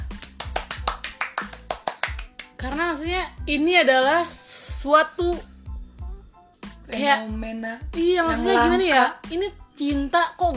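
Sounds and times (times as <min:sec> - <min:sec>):
sharp hand claps: 0:00.0 - 0:02.8, 0:08.7 - 0:09.2
speech: 0:02.6 - 0:05.5, 0:06.9 - 0:10.5.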